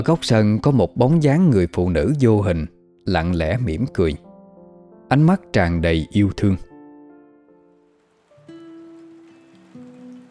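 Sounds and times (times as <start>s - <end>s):
speech: 0.0s - 4.2s, 5.1s - 6.7s
light drizzling rain: 7.8s - 10.3s.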